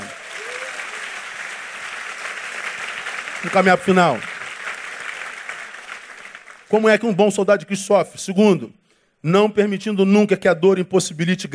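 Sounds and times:
audience applause: 0.0 - 6.8
speech: 3.4 - 4.3, 6.7 - 11.5.

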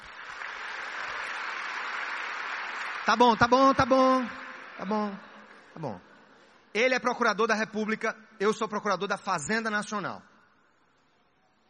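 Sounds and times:
crowd clapping: 0.0 - 5.8
speech: 3.1 - 6.1, 6.8 - 10.3.

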